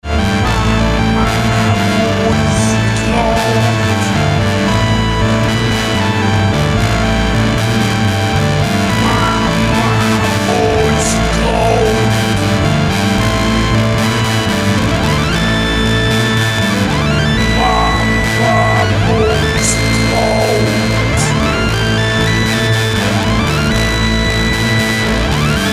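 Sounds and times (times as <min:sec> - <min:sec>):
theremin: 0:00.0 - 0:25.7.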